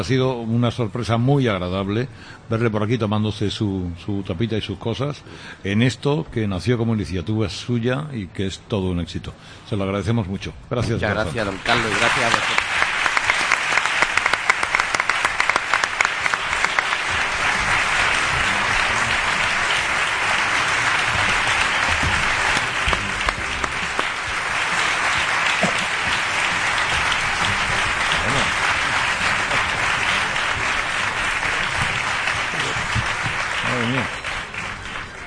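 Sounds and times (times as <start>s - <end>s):
speech: 0.0s - 12.7s
ovation, audience applause: 11.3s - 35.2s.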